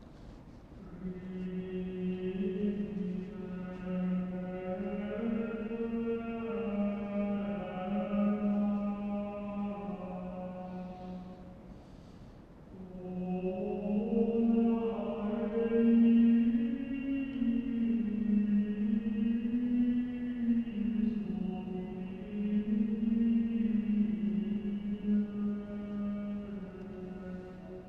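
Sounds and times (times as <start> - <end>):
Gregorian chant: 0.8 - 11.5, 12.8 - 27.8.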